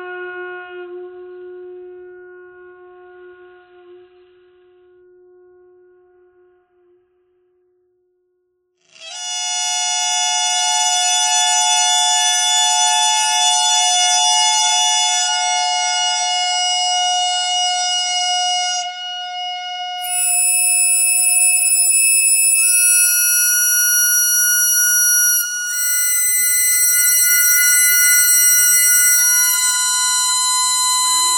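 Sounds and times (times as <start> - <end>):
bagpipe thread noise: 8.9 - 31.3.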